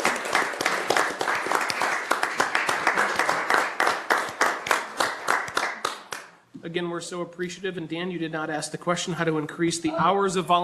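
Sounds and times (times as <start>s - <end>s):
audience applause: 0.0s - 6.3s
speech: 6.7s - 10.6s.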